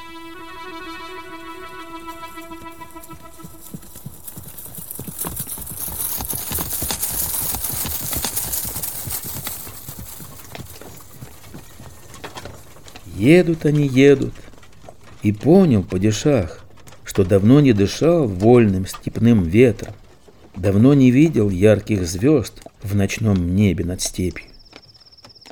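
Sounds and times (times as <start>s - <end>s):
sustained buzzy tone: 0.0s - 3.9s
horse hooves clip-clopping pulling a chariot: 0.0s - 25.4s
speech: 13.2s - 14.4s, 15.2s - 16.6s, 17.2s - 20.0s, 20.6s - 24.5s.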